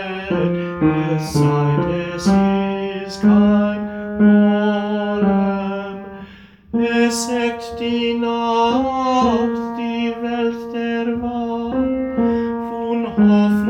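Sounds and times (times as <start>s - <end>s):
tenor singing: 0.0s - 13.6s.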